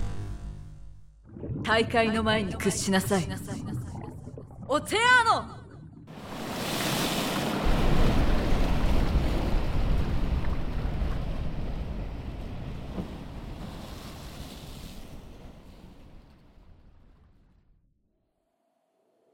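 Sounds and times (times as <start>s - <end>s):
speech: 1.7s - 3.9s, 4.7s - 5.6s
flood of rushing water unleashed by a magic spell: 6.1s - 16.1s.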